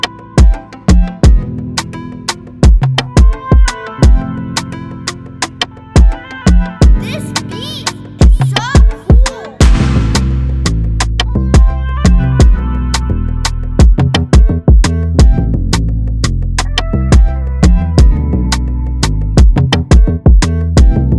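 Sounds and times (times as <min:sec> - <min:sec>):
relaxing instrumental music in C major: 0:00.0 - 0:21.1.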